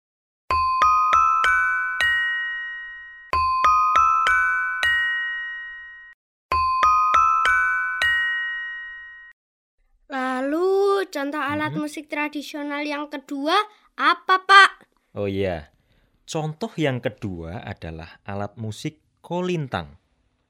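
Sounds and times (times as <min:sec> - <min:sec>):
saron gamelan metallophone struck metal notes: 0:00.5 - 0:09.3
speech: 0:11.1 - 0:20.0.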